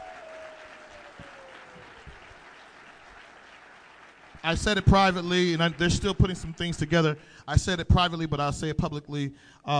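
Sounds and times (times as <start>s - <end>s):
crowd applause: 0.0s - 7.1s
speech: 4.4s - 9.7s.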